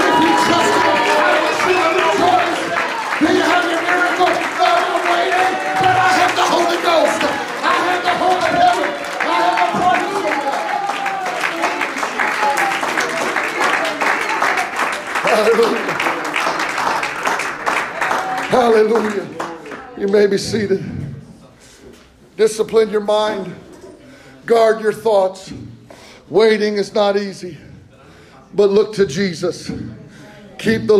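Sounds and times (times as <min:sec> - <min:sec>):
audience shouting: 0:00.0 - 0:16.0
audience clapping hands: 0:00.0 - 0:20.3
speech: 0:20.1 - 0:21.1, 0:22.4 - 0:23.6, 0:24.4 - 0:25.6, 0:26.3 - 0:27.7, 0:28.5 - 0:30.0, 0:30.6 - 0:30.9.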